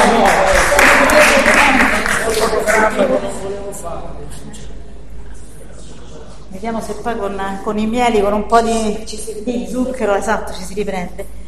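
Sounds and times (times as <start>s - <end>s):
audience applause: 0.0s - 3.1s
crowd voices: 0.0s - 6.8s
speech: 6.6s - 11.4s.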